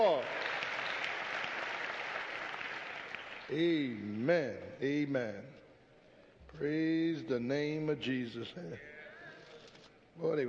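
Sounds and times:
audience applauding, hand clapping: 0.0s - 3.5s
speech: 3.5s - 5.6s, 6.5s - 8.9s, 10.2s - 10.4s.

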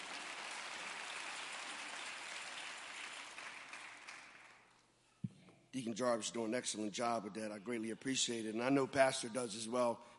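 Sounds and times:
hand clapping: 0.0s - 4.7s
speech: 5.7s - 10.1s.

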